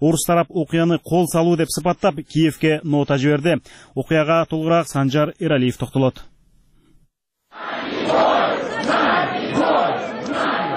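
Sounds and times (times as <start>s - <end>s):
speech: 0.0s - 6.3s
demonstrators shouting outside the Russian embassy in Kyiv: 7.6s - 10.7s.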